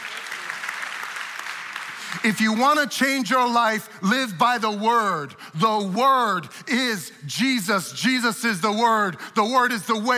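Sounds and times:
audience cheering and applauding: 0:00.0 - 0:02.3
speech: 0:02.2 - 0:10.1.

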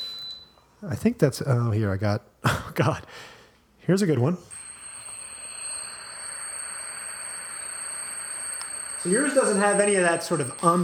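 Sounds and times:
speech: 0:00.8 - 0:04.6, 0:09.0 - 0:10.8
simulated tinnitus high-pitched electronic tone: 0:04.5 - 0:10.8.

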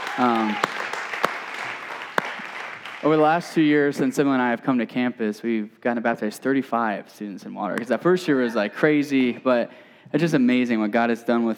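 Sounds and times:
audience clapping: 0:00.0 - 0:03.8
speech: 0:00.2 - 0:00.8, 0:03.0 - 0:11.5.

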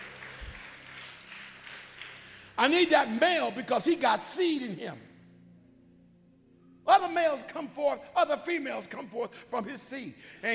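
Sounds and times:
audience clapping hands: 0:00.0 - 0:02.9
speech: 0:02.6 - 0:05.1, 0:07.0 - 0:10.5.

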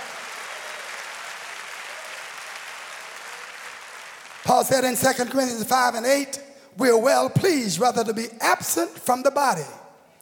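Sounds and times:
audience clapping hands: 0:00.0 - 0:05.5
speech: 0:04.5 - 0:09.8.

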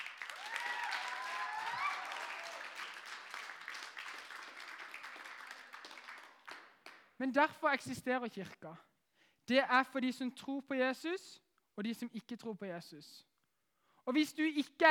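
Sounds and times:
audience applause: 0:00.0 - 0:07.0
speech: 0:07.2 - 0:08.9, 0:09.5 - 0:13.3, 0:14.1 - 0:14.8.

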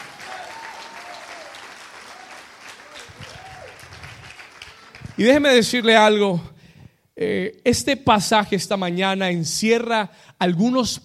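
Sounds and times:
loud audience applause: 0:00.0 - 0:05.5
speech: 0:05.2 - 0:06.5, 0:07.2 - 0:11.0.

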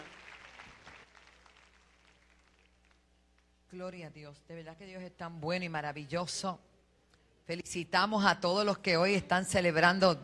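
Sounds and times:
crowd clapping: 0:00.0 - 0:03.1
speech: 0:03.7 - 0:06.7, 0:07.5 - 0:10.2.

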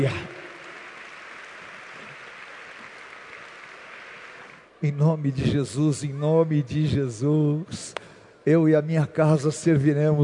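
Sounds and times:
speech: 0:00.0 - 0:00.3, 0:04.8 - 0:10.2
audience applauding: 0:00.0 - 0:04.8.

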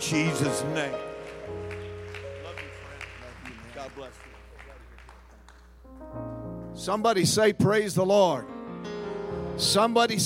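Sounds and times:
audience clapping hands: 0:00.0 - 0:05.9
speech: 0:00.1 - 0:01.6, 0:04.0 - 0:04.4, 0:06.8 - 0:08.5, 0:09.6 - 0:10.2.

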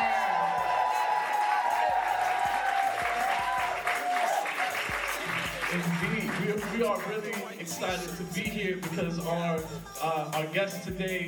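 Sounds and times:
cheering and shouting voices: 0:00.0 - 0:06.0
audience applauding at a live event at a college: 0:00.0 - 0:07.5
speech: 0:06.8 - 0:11.2.

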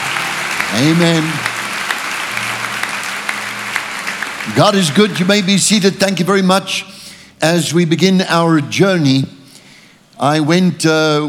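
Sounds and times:
church congregation applauding: 0:00.0 - 0:06.6
speech: 0:00.7 - 0:01.5, 0:04.5 - 0:09.4, 0:10.2 - 0:11.2.

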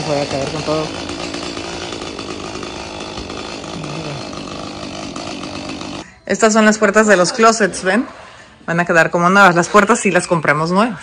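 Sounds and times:
chainsaw cutting down a palm tree: 0:00.0 - 0:06.1
speech: 0:00.1 - 0:01.3, 0:06.3 - 0:11.0.

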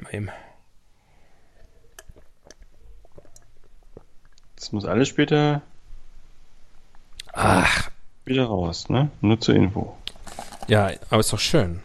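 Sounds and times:
speech: 0:00.1 - 0:00.5, 0:04.6 - 0:05.7, 0:07.4 - 0:10.0, 0:10.7 - 0:11.8
person drinking a beverage: 0:01.1 - 0:04.6, 0:10.1 - 0:10.8.

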